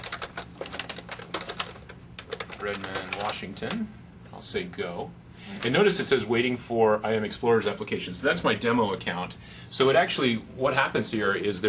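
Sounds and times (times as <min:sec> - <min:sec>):
typing an address on a computer keyboard: 0:00.0 - 0:03.8
speech: 0:02.6 - 0:11.6.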